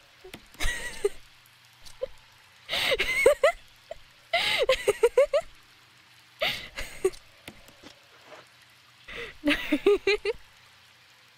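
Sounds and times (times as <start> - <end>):
person laughing: 0.6 - 1.2, 2.7 - 3.6, 4.4 - 5.5, 6.4 - 7.2, 9.2 - 10.4.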